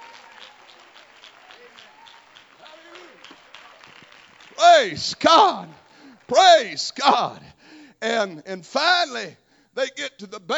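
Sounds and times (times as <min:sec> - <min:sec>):
audience clapping hands: 0:00.0 - 0:07.3
speech: 0:04.8 - 0:10.5.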